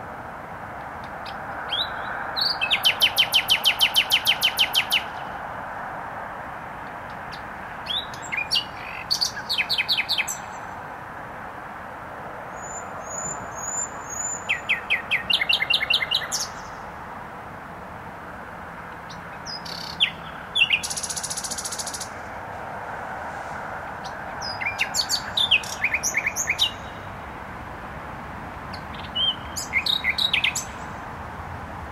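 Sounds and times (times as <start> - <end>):
steady background traffic hum: 0.0 - 31.9
nightingale song: 1.0 - 5.4, 7.0 - 10.8, 12.5 - 17.0, 18.9 - 22.4, 24.0 - 27.3, 28.7 - 31.1.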